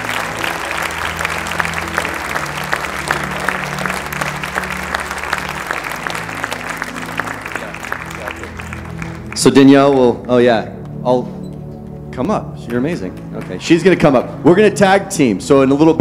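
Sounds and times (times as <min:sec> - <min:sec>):
crowd murmur: 0:00.0 - 0:09.3
audience applauding to welcome two speakers: 0:00.0 - 0:11.0, 0:12.2 - 0:14.4
speech: 0:09.4 - 0:11.4, 0:12.2 - 0:15.9.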